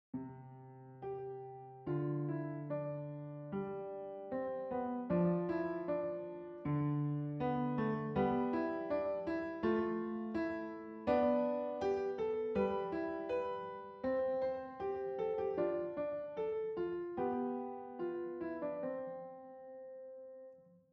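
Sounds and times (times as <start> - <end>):
piano: 0.0 - 20.9.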